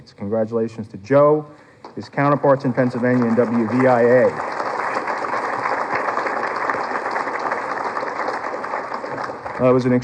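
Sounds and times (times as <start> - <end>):
speech: 0.0 - 4.5, 9.6 - 10.0
applause: 2.2 - 10.0.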